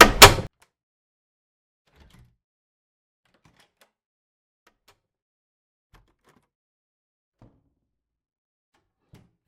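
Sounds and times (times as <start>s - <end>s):
door closing: 0.0s - 0.5s.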